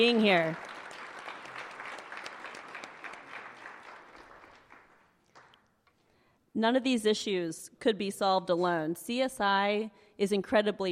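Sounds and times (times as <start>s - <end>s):
speech: 0.0s - 0.7s, 6.6s - 10.9s
audience applause: 0.0s - 5.6s.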